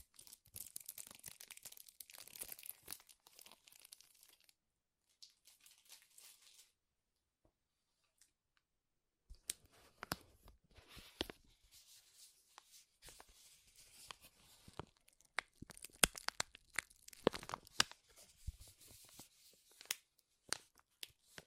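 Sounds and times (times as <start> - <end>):
material crinkling: 0.0 - 6.8, 9.4 - 21.4.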